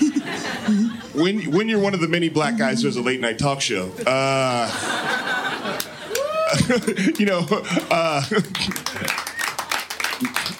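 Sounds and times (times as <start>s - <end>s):
laughter: 0.0s - 3.2s, 4.1s - 9.4s
speech: 0.7s - 5.2s, 6.6s - 9.2s
thin scattered applause from a studio audience: 5.6s - 10.5s.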